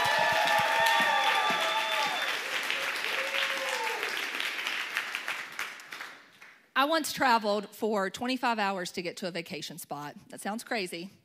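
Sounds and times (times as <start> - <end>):
whooping cheers: 0.0 - 4.2
audience applause: 0.0 - 6.2
speech: 6.8 - 11.2.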